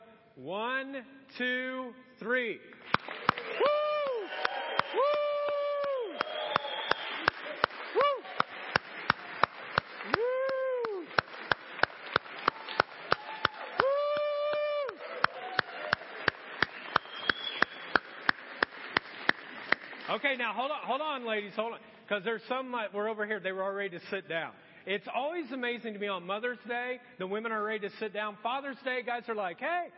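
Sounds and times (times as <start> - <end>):
speech: 0.4 - 3.8, 20.2 - 29.9
audience clapping in a steady fast rhythm: 2.8 - 20.4
voices whooping and cheering: 3.4 - 8.8, 10.0 - 11.2, 12.4 - 17.7.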